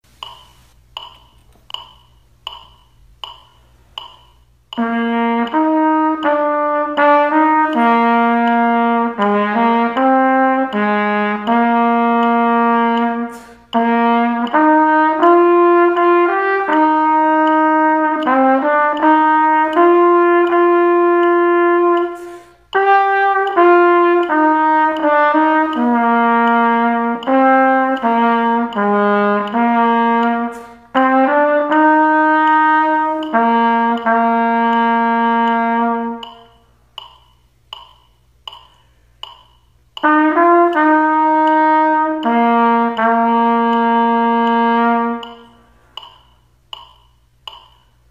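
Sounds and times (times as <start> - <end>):
trumpet: 4.7 - 36.7, 40.0 - 45.7.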